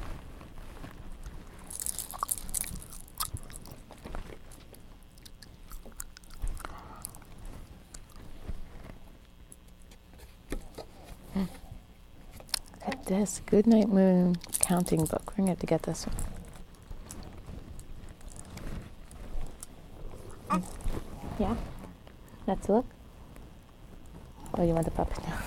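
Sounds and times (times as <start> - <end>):
baby chewing on keys: 1.2 - 8.3, 14.3 - 15.2, 16.1 - 21.0
speech: 13.1 - 16.3, 22.7 - 22.9, 24.6 - 25.4.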